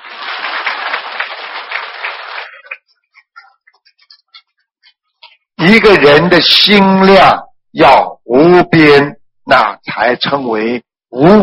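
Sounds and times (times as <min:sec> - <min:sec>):
audience applause: 0:00.0 - 0:02.9
speech: 0:05.6 - 0:11.4.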